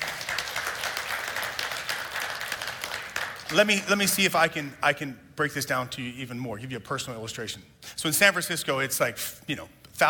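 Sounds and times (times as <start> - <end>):
audience clapping hands: 0.0 - 4.0
speech: 3.5 - 10.0.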